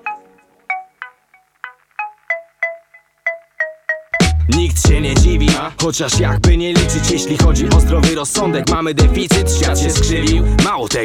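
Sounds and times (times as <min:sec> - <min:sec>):
polyphonic phone ringtone: 0:00.0 - 0:04.4
speech: 0:04.5 - 0:11.0.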